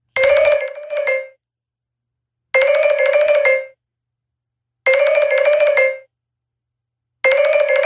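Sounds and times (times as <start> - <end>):
ringtone: 0.2 - 1.4, 2.6 - 3.8, 4.9 - 6.1, 7.2 - 7.8.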